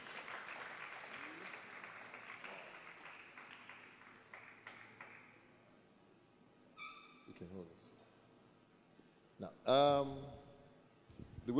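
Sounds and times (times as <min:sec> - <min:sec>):
crowd applauding: 0:00.0 - 0:05.4
speech: 0:07.4 - 0:08.0, 0:09.4 - 0:10.4.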